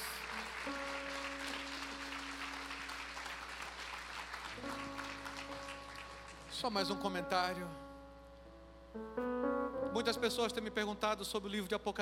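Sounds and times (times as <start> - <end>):
audience applauding: 0.0 - 7.0
speech: 6.6 - 7.8, 10.0 - 11.9.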